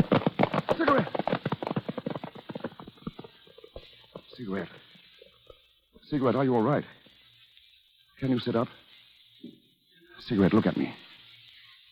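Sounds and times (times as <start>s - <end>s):
horse hooves pounding: 0.0s - 5.6s
speech: 4.5s - 4.8s, 6.1s - 7.0s, 8.2s - 8.8s, 10.3s - 11.0s.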